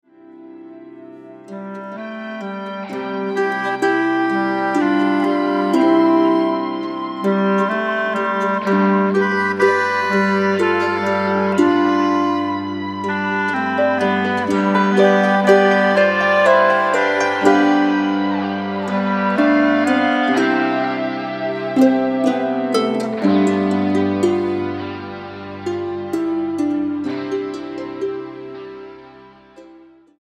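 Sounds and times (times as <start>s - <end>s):
modern Ländler dance music: 3.2s - 27.2s.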